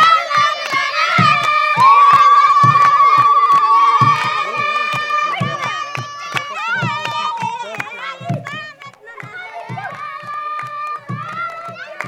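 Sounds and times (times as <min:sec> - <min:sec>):
percussion with natural reverb at a Touareg camp in north Niger: 0:00.0 - 0:12.0
people chanting at a Touareg camp in north Niger: 0:01.7 - 0:06.8.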